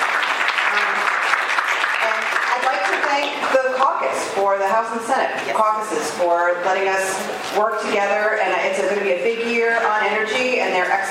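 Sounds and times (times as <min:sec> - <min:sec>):
audience applause: 0:00.0 - 0:03.5
speech: 0:03.2 - 0:11.0.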